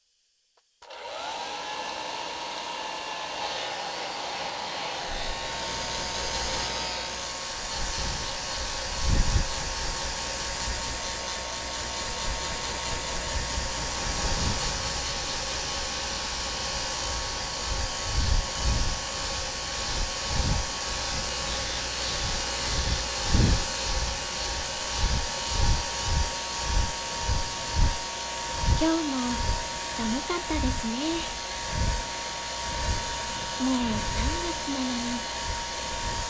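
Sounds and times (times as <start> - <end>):
hair dryer blowing: 0.8 - 36.2
speech: 30.4 - 31.4.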